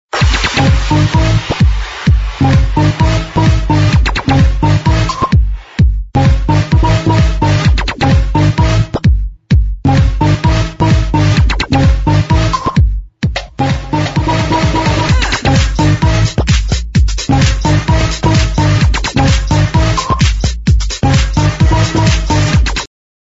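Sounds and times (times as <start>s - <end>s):
techno house ringtone: 0.2s - 22.9s.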